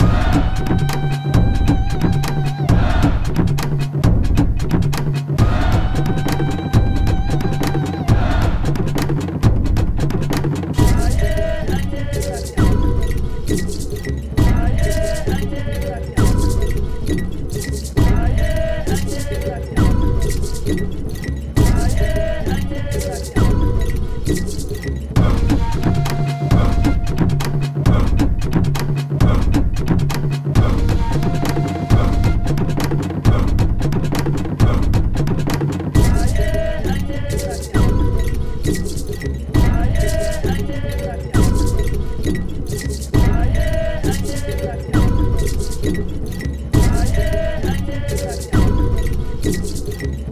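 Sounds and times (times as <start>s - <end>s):
Aztec vocal chant: 0.0s - 50.3s.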